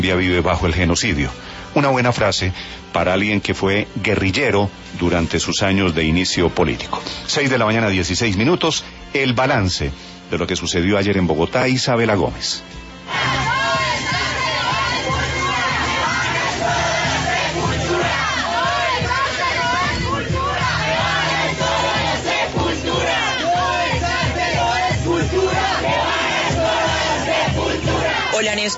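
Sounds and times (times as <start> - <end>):
speech: 0.0 - 13.4, 28.4 - 28.7
crowd of animal-rights activists and bullfighting fans shouting at Santa María bullring in Bogotá: 13.0 - 28.7.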